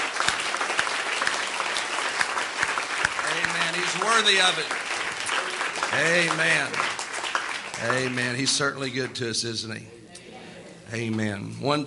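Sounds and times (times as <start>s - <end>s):
audience clapping hands in praise: 0.0s - 9.5s
speech: 4.0s - 4.8s, 6.0s - 6.9s, 7.8s - 10.0s, 10.9s - 11.8s.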